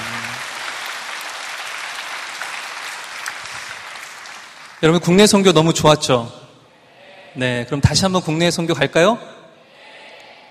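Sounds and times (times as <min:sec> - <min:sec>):
audience applause: 0:00.0 - 0:04.8
speech: 0:04.8 - 0:06.4, 0:07.4 - 0:09.3.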